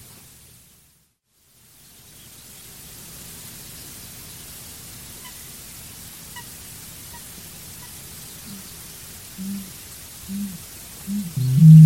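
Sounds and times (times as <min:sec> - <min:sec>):
bird giving deep low hoots: 0:09.4 - 0:11.8.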